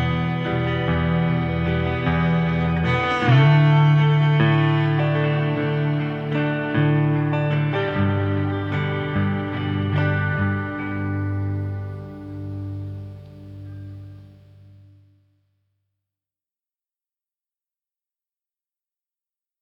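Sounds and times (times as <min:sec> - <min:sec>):
instrumental music: 0:00.0 - 0:15.4.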